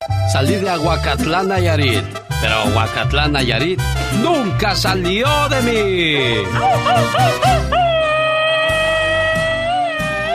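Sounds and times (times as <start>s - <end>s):
speech: 0.3s - 7.8s
rapid-fire Mexican grito: 6.2s - 10.3s.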